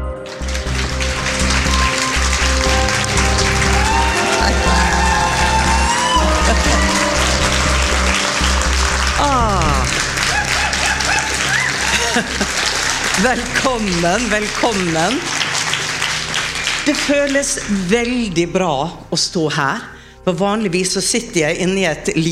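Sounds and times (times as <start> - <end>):
loud music with a heavy bass line: 0.0 - 14.2
live audience cheering and applauding at a packed show: 0.0 - 17.9
laughter: 3.3 - 14.1
speech: 13.2 - 15.4, 16.8 - 22.2.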